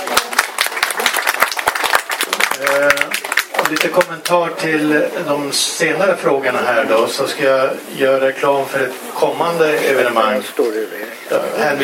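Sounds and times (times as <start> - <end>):
small round of applause: 0.0 - 4.4
speech: 3.7 - 11.8.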